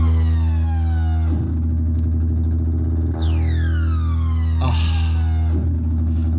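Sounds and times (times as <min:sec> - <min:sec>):
EMS AKS analog synthesizer buzzy sustained drone: 0:00.0 - 0:06.3
bright synthesizer tones swooping downward in pitch: 0:03.2 - 0:05.6.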